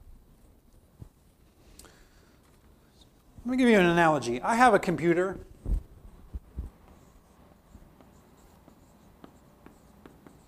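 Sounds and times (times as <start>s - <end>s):
speech: 3.4s - 5.5s
writing on a board: 6.2s - 10.4s.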